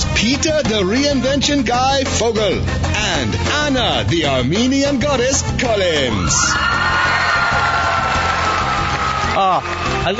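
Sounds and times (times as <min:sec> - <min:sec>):
speech: 0:00.2 - 0:07.0, 0:09.4 - 0:10.1
audience applause and cheering: 0:06.2 - 0:10.1.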